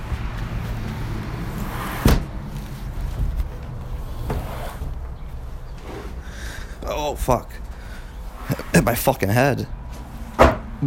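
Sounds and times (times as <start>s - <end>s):
steady low rumbling background: 0.0s - 10.8s
windows being shut: 1.8s - 2.4s, 10.3s - 10.8s
speech: 7.0s - 7.6s, 8.8s - 9.8s.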